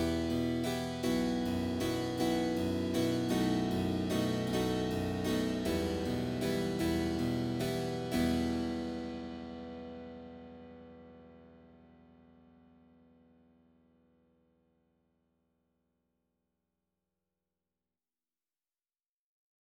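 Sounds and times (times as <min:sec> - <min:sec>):
harpsichord concerto: 0:00.0 - 0:09.0.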